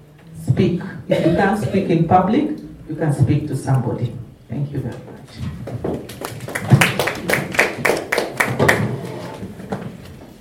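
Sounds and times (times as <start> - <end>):
speech: 0.5 - 6.0
audience clapping: 5.6 - 9.4.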